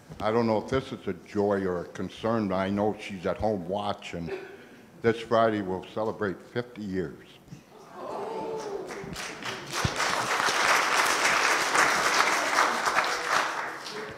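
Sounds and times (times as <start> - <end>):
speech: 0.2 - 7.4
audience applause: 8.4 - 14.1.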